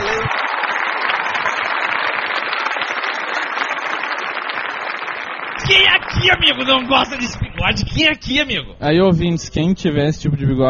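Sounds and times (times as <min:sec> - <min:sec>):
crowd applause: 0:00.0 - 0:08.2
speech: 0:05.7 - 0:10.6.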